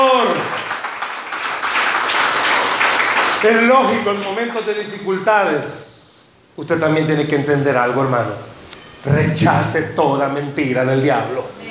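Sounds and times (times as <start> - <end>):
audience applause: 0.0 - 4.3
speech: 3.4 - 6.0, 6.6 - 11.6.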